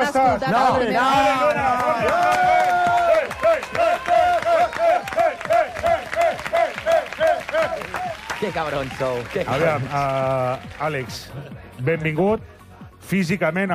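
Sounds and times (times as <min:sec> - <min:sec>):
studio audience clapping in rhythm: 0:00.0 - 0:11.7
speech: 0:00.1 - 0:02.8, 0:08.4 - 0:12.5, 0:13.1 - 0:13.7.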